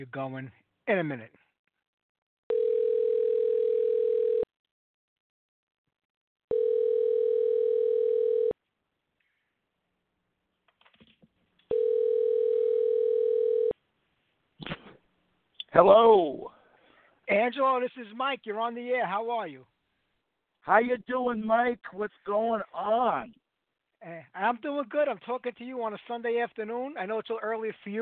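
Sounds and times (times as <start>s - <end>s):
speech: 0.0s - 1.4s, 15.7s - 16.5s, 17.3s - 19.7s, 20.6s - 23.4s, 24.0s - 28.0s
telephone ringing tone on a call to an interview guest: 2.5s - 4.5s, 6.5s - 8.6s, 11.7s - 13.8s.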